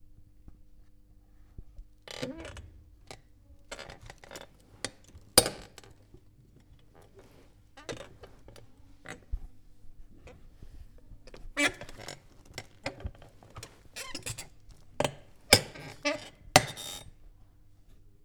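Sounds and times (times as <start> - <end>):
chair: 2.1 - 6.0, 6.6 - 9.5, 10.2 - 17.1.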